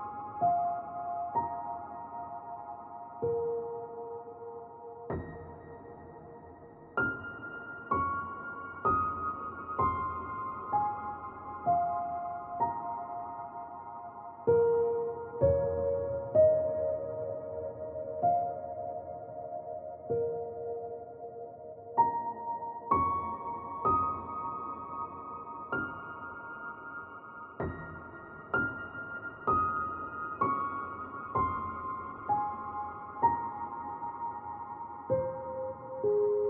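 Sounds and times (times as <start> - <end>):
ethereal space piano notes: 0.0 - 36.4.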